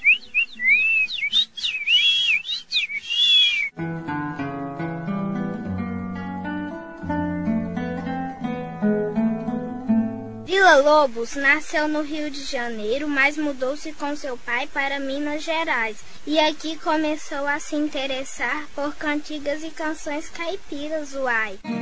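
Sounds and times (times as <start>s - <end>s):
person whistling an imitation of birdsong: 0.0s - 3.7s
instrumental music: 3.8s - 10.5s, 21.6s - 21.8s
speech: 10.8s - 21.8s.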